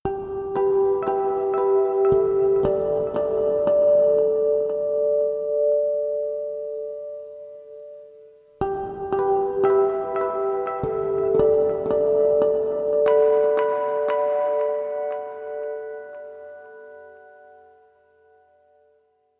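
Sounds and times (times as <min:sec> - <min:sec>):
ambient guitar: 0:00.0 - 0:19.2.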